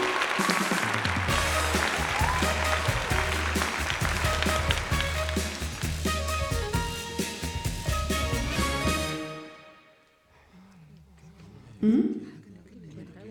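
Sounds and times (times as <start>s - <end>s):
audience applause welcoming an animal guest at a show: 0.0s - 9.4s.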